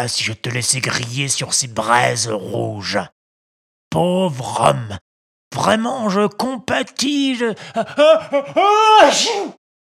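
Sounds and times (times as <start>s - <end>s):
speech: 0.0s - 3.2s, 3.9s - 9.6s
laughter: 7.7s - 8.9s
person imitating a sneeze: 8.4s - 9.6s.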